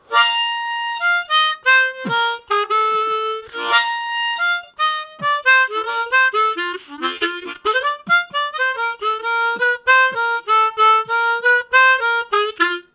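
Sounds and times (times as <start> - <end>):
syncopated harmonica: 0.0 - 12.9.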